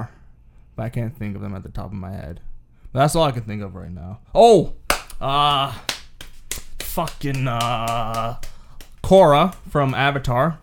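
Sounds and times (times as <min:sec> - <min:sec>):
speech: 0:00.8 - 0:05.9, 0:07.0 - 0:08.5, 0:09.1 - 0:10.6
hand slaps: 0:04.9 - 0:10.5.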